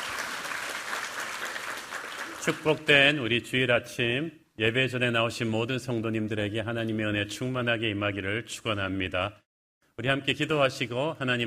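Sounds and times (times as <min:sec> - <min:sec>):
congregation applauding at a Korean Sunday morning worship service: 0:00.0 - 0:03.0
speech: 0:02.4 - 0:09.4, 0:10.0 - 0:11.4.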